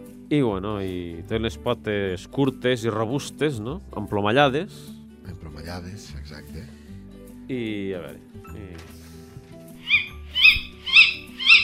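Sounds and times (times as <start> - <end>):
speech: 0.3 - 6.8, 7.5 - 9.0
Tawny Owl calls: 9.8 - 11.6.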